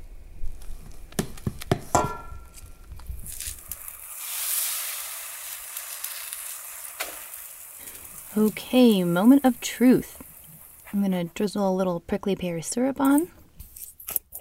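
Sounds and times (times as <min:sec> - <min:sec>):
cookware clinking and tapping: 0:01.9 - 0:02.6
pancake batter sizzling on a hot griddle: 0:02.8 - 0:11.5
speech: 0:08.4 - 0:10.2, 0:10.9 - 0:13.4.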